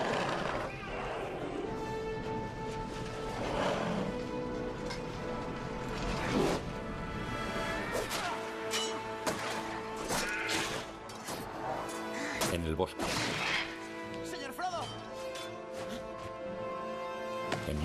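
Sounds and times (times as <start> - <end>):
sustained orchestral film music: 0.0 - 17.8
sword fight against orcs in a forest clearing: 8.1 - 11.4.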